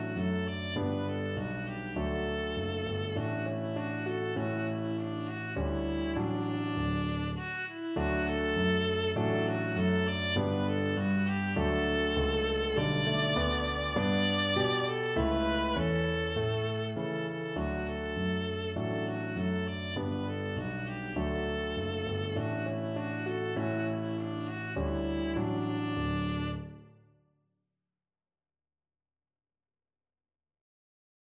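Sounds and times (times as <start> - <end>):
viola playing: 0.0 - 26.9.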